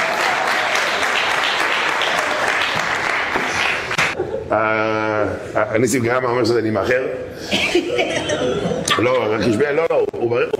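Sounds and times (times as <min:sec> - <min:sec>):
congregation clapping during a rabbi's sermon: 0:00.0 - 0:04.2
speech: 0:04.5 - 0:10.5.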